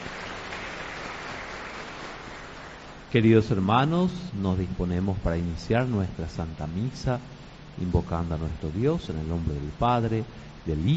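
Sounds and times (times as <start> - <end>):
audience applauding: 0.0 - 3.0
speech: 3.1 - 10.9.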